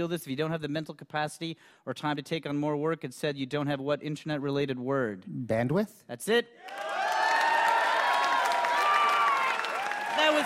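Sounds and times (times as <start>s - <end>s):
speech: 0.0s - 7.0s
applause: 6.6s - 10.4s
crowd cheering: 6.6s - 10.4s.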